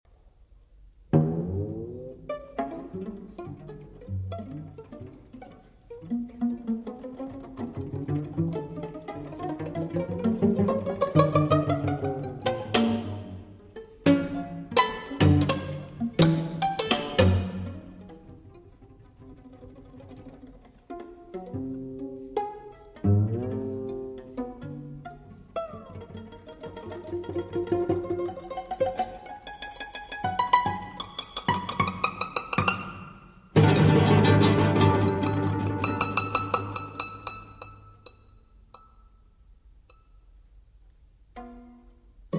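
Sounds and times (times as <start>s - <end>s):
string quartet pizzicato études: 1.0s - 38.9s, 40.6s - 42.3s.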